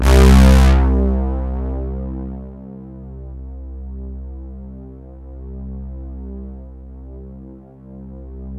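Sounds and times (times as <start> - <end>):
Roland JV-1080 polybrass synth: 0.0 - 3.8.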